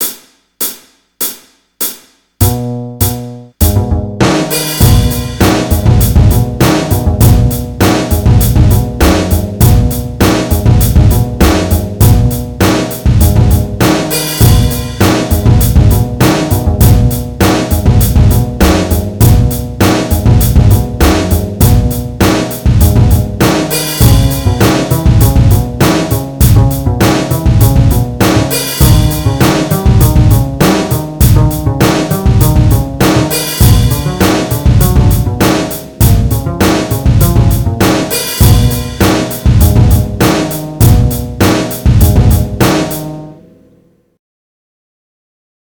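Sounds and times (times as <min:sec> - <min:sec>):
groove music: 0:00.0 - 0:43.7.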